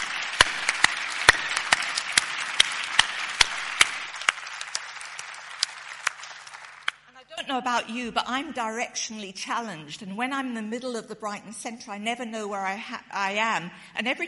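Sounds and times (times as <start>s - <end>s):
audience applause: 0.0s - 7.0s
speech: 7.5s - 14.2s.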